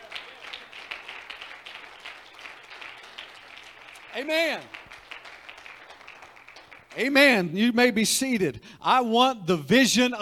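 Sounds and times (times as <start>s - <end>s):
audience clapping: 0.0s - 7.6s
speech: 4.2s - 4.8s, 7.0s - 10.2s.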